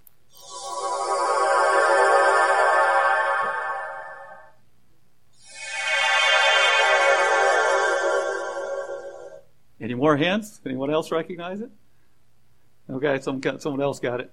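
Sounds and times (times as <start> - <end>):
Star Trek transporter beaming effect: 0.3 - 4.6, 5.4 - 9.5
speech: 10.0 - 11.8, 13.0 - 14.3.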